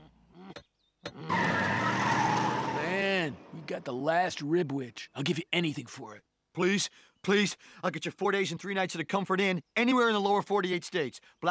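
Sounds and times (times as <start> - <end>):
limousine braking hard to a stop with tires squealing: 1.3 - 3.5
speech: 3.7 - 11.5.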